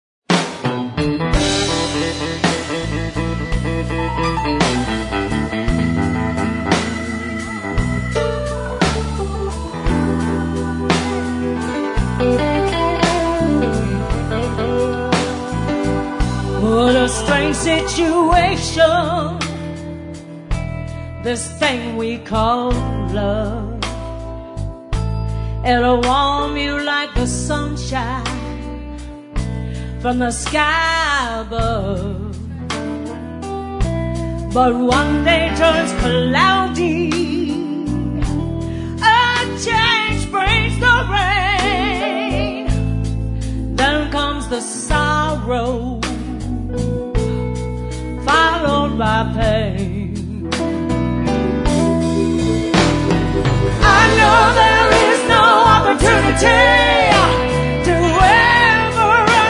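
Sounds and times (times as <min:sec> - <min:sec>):
blues music: 0:00.3 - 0:59.4.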